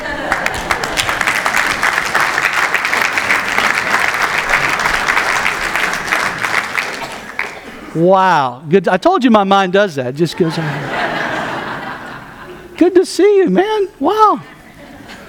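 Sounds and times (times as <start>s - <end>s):
laughter: 0.0s - 1.8s, 10.2s - 12.9s, 14.4s - 15.2s
audience applause welcoming guests: 0.0s - 7.8s
speech: 8.0s - 11.0s, 12.8s - 14.5s.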